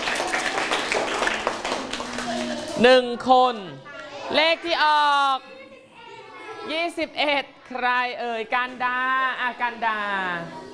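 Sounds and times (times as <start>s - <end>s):
classroom clapping: 0.0s - 2.8s
speech: 2.8s - 5.5s, 6.6s - 10.7s.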